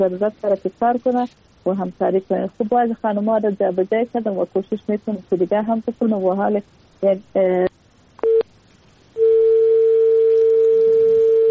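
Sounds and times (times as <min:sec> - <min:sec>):
speech: 0:00.0 - 0:07.8
electronic tone beeps after a phone call cuts off: 0:08.2 - 0:08.5, 0:09.2 - 0:11.4
dial tone: 0:09.2 - 0:11.4.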